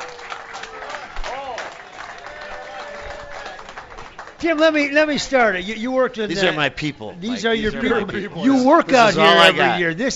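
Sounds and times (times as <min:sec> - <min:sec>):
audience applause for an umpire: 0:00.0 - 0:04.8
speech: 0:04.4 - 0:10.1.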